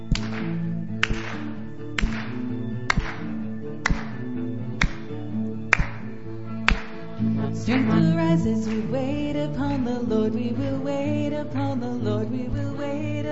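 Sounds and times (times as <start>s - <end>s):
group clapping in unison: 0.0s - 9.8s
sustained low musical tones: 0.0s - 13.3s
speech: 7.7s - 13.3s.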